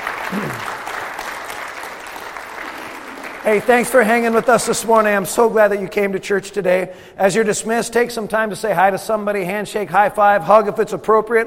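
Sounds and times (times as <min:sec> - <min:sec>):
crowd clapping: 0:00.0 - 0:05.6
speech: 0:00.3 - 0:00.8, 0:03.4 - 0:11.4.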